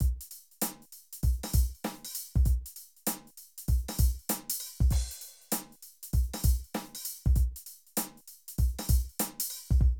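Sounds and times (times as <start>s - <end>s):
streetsoul drum loops: 0.0s - 9.9s.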